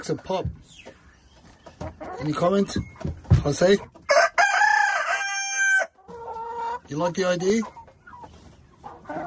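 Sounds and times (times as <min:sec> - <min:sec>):
speech: 0:00.0 - 0:01.0, 0:01.8 - 0:04.0, 0:06.9 - 0:07.8
rooster crowing: 0:04.1 - 0:05.9.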